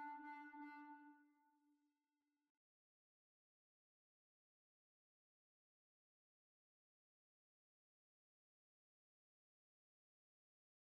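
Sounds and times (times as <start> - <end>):
hornpipe tune: 0.0 - 1.1.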